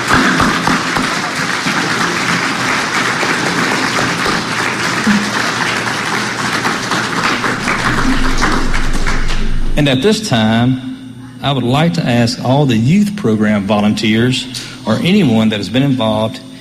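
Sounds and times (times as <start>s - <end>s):
applause for graduates: 0.0s - 10.0s
speech: 9.8s - 16.4s.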